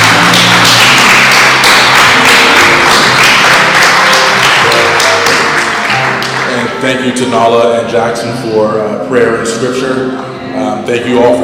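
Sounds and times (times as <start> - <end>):
audience applause: 0.0 - 6.8
speech: 6.8 - 10.3, 10.9 - 11.4.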